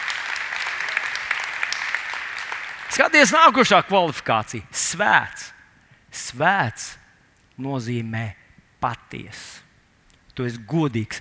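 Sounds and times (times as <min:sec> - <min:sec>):
audience applause: 0:00.0 - 0:03.3
speech: 0:02.9 - 0:05.6, 0:06.2 - 0:07.0, 0:07.6 - 0:09.6, 0:10.4 - 0:11.1.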